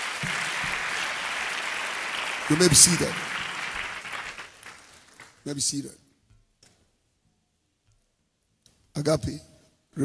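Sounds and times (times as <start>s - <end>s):
audience clapping hands: 0.0s - 5.6s
speech: 2.5s - 3.5s, 5.5s - 6.0s, 9.0s - 10.0s.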